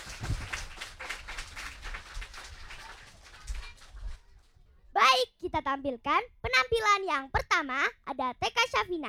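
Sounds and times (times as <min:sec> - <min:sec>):
children's audience applause: 0:00.0 - 0:04.3
speech: 0:05.5 - 0:09.0.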